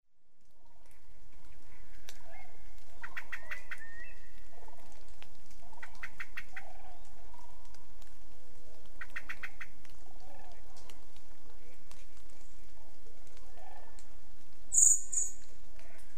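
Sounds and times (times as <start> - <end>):
steady background noise: 0.1 - 16.1
Eurasian blackbird clicking calls: 3.0 - 4.0, 5.8 - 6.8, 9.0 - 9.8, 14.7 - 15.5
faint whistles of other birds: 14.7 - 15.4.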